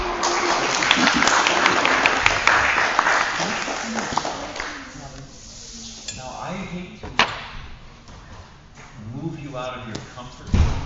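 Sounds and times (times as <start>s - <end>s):
applause: 0.0s - 4.9s.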